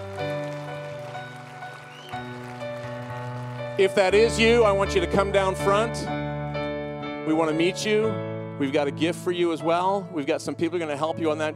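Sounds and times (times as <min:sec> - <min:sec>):
audience clapping: 0:00.0 - 0:04.8
speech: 0:03.8 - 0:06.2, 0:07.2 - 0:11.5.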